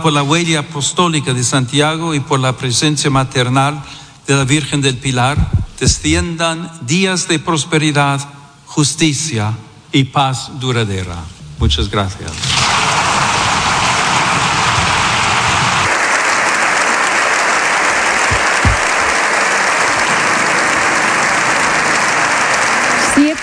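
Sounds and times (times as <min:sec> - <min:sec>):
speech: 0:00.0 - 0:13.0
large crowd applause in a big hall: 0:12.6 - 0:23.4.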